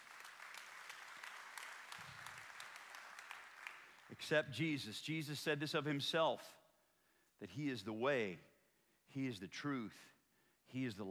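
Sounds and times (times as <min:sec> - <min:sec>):
audience applause: 0:00.0 - 0:04.1
speech: 0:04.1 - 0:06.6, 0:07.4 - 0:08.5, 0:09.1 - 0:11.0.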